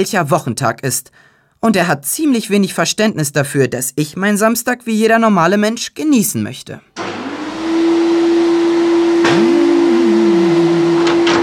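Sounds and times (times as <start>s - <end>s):
speech: 0.0s - 7.1s
vacuum cleaner running: 7.0s - 11.4s.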